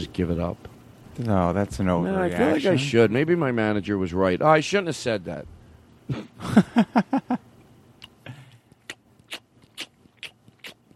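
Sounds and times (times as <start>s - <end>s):
speech: 0.0s - 7.3s
chewing gum: 8.0s - 10.9s.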